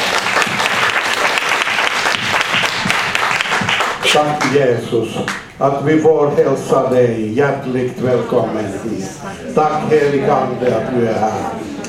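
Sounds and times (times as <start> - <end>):
warm audience applause: 0.0 - 4.5
speech: 4.1 - 11.7.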